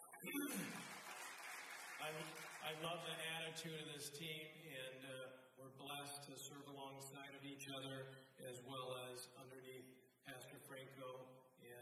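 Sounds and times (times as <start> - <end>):
crowd applause: 0.0 - 3.2
speech: 0.2 - 1.2, 2.0 - 11.8.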